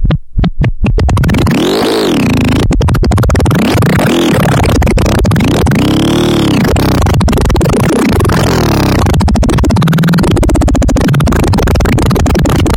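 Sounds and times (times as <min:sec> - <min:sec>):
wild fart: 0:00.9 - 0:12.7.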